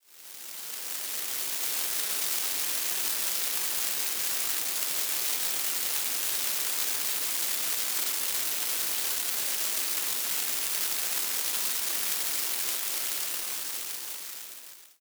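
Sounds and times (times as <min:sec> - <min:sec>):
rain: 0:00.2 - 0:14.9.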